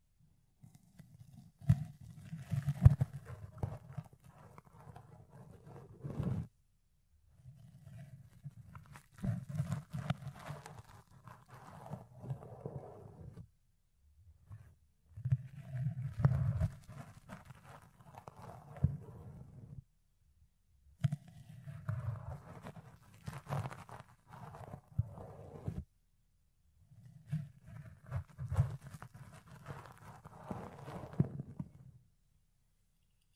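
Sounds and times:
ear cleaning and picking against a fluffy microphone: 0:00.6 - 0:06.5, 0:07.3 - 0:13.5, 0:14.4 - 0:19.8, 0:21.0 - 0:25.9, 0:26.9 - 0:32.0.

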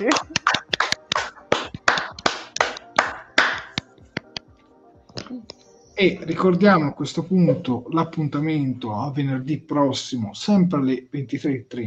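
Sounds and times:
audience applause: 0:00.0 - 0:03.8
speech: 0:05.4 - 0:11.8.

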